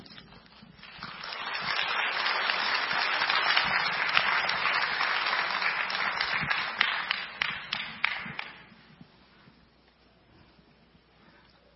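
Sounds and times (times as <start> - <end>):
audience applause welcoming a speaker: 0.8 - 8.6.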